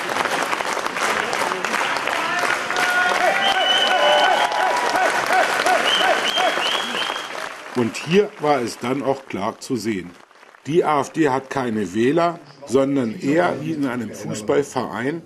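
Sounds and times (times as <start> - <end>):
loud cheering and applause of supporters: 0.0 - 11.4
speech: 7.8 - 15.2.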